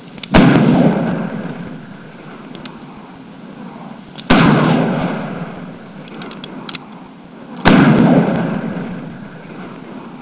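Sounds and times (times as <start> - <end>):
gunshot: 0.3 - 2.1, 4.3 - 5.9, 7.6 - 10.1.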